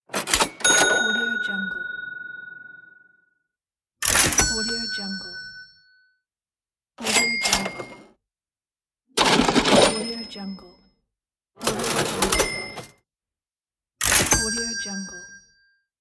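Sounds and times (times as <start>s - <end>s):
cash register: 0.1s - 2.9s, 4.0s - 4.8s, 7.0s - 8.2s, 9.2s - 10.6s, 11.6s - 13.0s, 14.0s - 15.0s.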